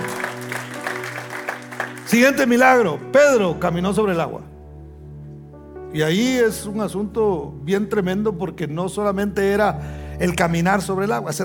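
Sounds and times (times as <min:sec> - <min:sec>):
audience clapping in a rhythmic beat: 0:00.0 - 0:02.9
sustained low musical tone: 0:00.0 - 0:11.4
speech: 0:02.1 - 0:04.5, 0:05.9 - 0:11.4.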